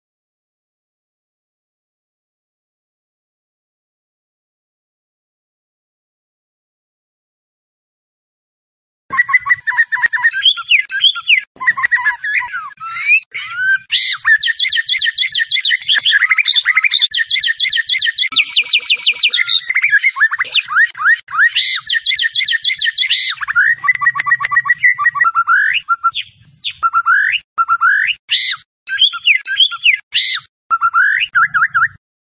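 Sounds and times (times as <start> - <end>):
White-rumped shama singing: 9.1 - 32.0.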